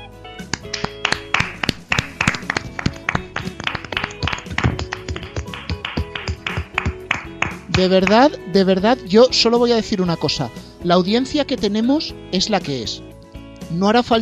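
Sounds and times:
applause: 0.4 - 8.4
speech: 7.8 - 13.1, 13.7 - 14.2.

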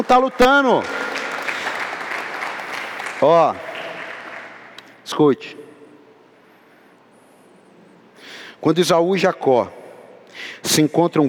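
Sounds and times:
speech: 0.0 - 1.0, 3.2 - 3.7, 5.1 - 5.7, 8.6 - 9.8, 10.4 - 11.2
audience applause: 0.0 - 4.8.

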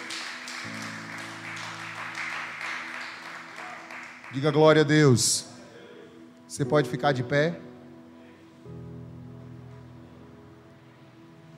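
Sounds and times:
audience applause: 0.0 - 4.6
low sustained keyboard chords: 0.0 - 11.5
speech: 4.3 - 5.5, 6.6 - 7.7.

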